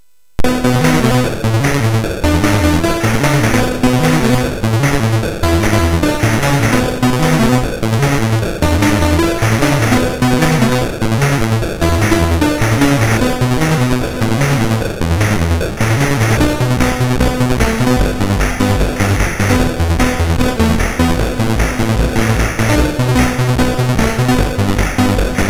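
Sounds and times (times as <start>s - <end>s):
MOS6581R3 synth sample: 0.4s - 10.8s, 11.8s - 25.4s.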